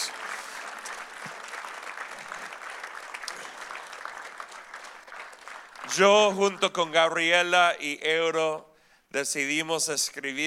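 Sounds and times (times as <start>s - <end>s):
audience applause for the choir: 0.0s - 7.0s
speech: 5.9s - 10.4s.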